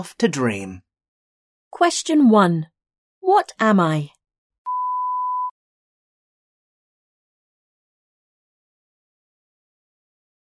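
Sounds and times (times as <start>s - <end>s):
speech: 0.0s - 0.9s, 1.7s - 4.2s
electronic beep: 4.7s - 5.5s.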